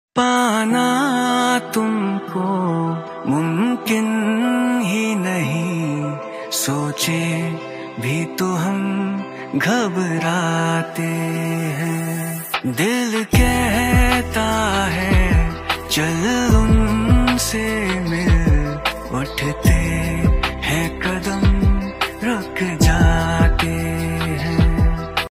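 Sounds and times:
lofi music: 0.2 - 25.3.

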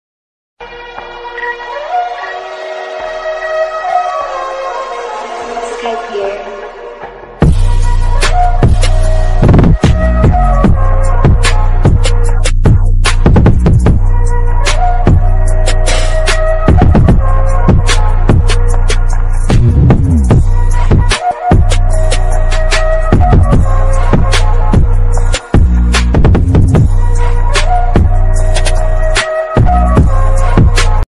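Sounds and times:
bass boosted English attitude ringtone music: 0.8 - 31.0.

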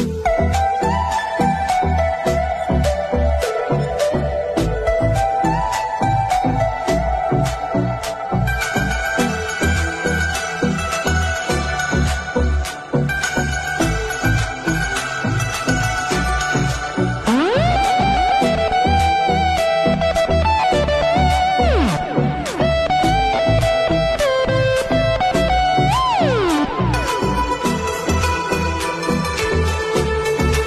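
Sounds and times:
beautiful instrumental mobile ringtone: 0.1 - 30.5.

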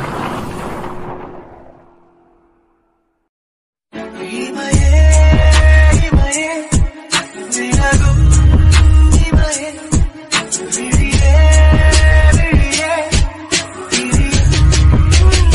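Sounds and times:
love background music ringtone: 3.9 - 15.5.

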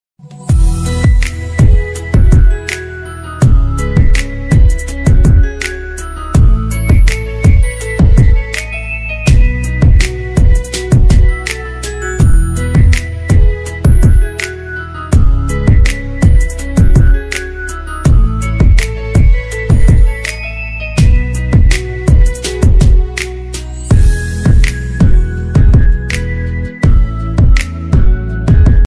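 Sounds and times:
instrumental ringtone: 0.5 - 28.8.

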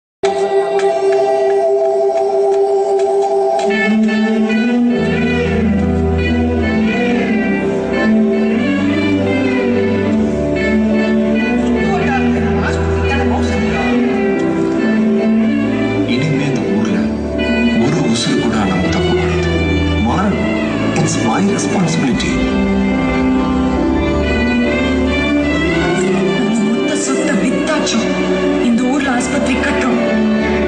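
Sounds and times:
sad sentimental background music: 0.2 - 30.6.

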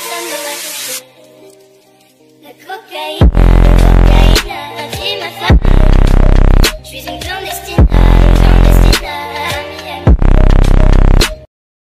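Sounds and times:
bass boosted English remix ringtone: 3.2 - 11.5.

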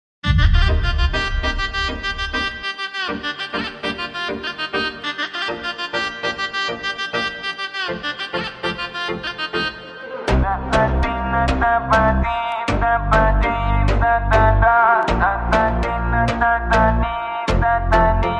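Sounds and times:
background music: 0.2 - 18.3.

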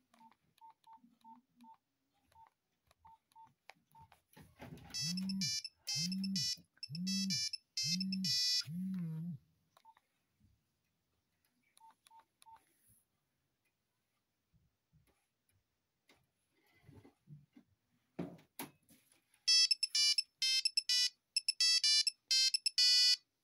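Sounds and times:
Nokia mobile phone ringtone: 4.9 - 9.4, 19.5 - 23.2.

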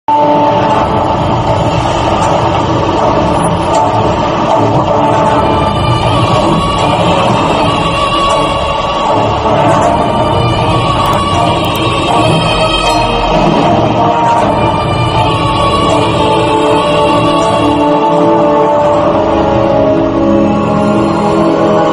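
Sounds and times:
villain entry background music: 0.1 - 21.9.

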